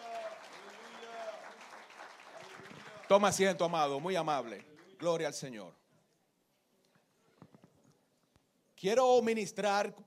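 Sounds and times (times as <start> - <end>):
church congregation applauding during a service: 0.0 - 5.5
speech: 3.1 - 5.8, 8.8 - 10.0.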